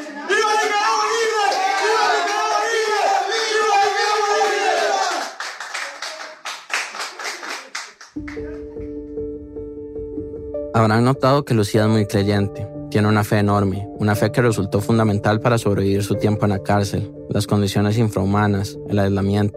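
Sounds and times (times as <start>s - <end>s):
group of freed prisoners shouting: 0.0s - 5.3s
speech: 10.8s - 19.5s.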